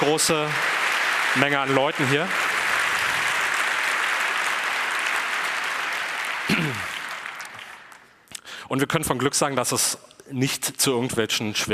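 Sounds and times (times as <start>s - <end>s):
applause: 0.0s - 8.2s
speech: 0.1s - 0.7s, 1.3s - 2.4s, 8.7s - 11.7s.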